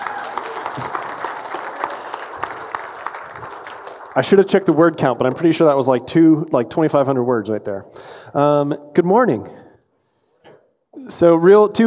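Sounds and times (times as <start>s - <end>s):
audience applause: 0.0s - 5.2s
speech: 4.2s - 9.6s, 11.2s - 11.8s.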